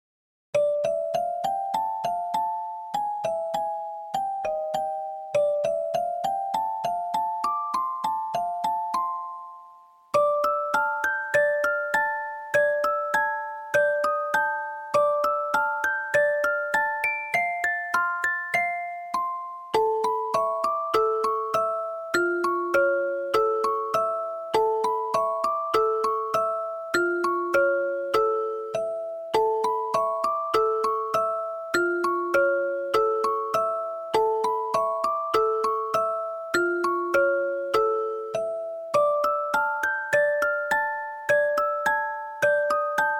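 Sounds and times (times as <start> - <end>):
classical piece arranged for music box: 0.6 - 43.1.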